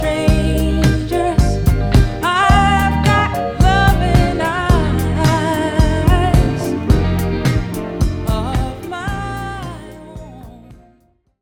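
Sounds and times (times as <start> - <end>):
1970s female pop song played on a laser turntable: 0.0 - 11.0.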